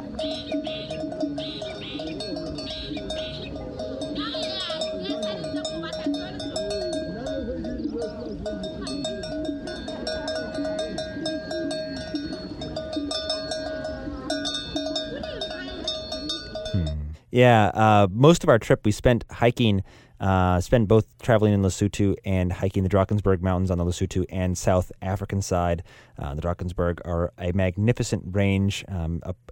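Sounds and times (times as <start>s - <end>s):
jingling bells of sheep heading to pasture: 0.0s - 17.2s
murmuring voices: 0.9s - 16.2s, 16.8s - 17.2s
speech: 17.4s - 29.4s.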